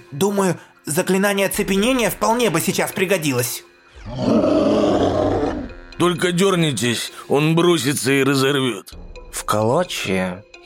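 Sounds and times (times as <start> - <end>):
speech: 0.1 - 4.7, 6.0 - 10.6
monstrous two-headed dog roaring: 4.0 - 5.8.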